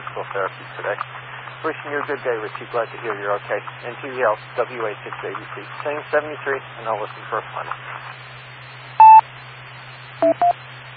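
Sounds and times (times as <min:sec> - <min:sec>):
speech: 0:00.2 - 0:08.3
phone ringing: 0:10.2 - 0:10.5.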